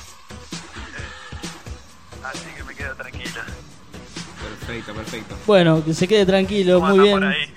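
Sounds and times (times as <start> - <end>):
radio show jingle for a caller from Lobos on a basketball talk program: 2.2 - 3.6
speech: 5.5 - 7.5.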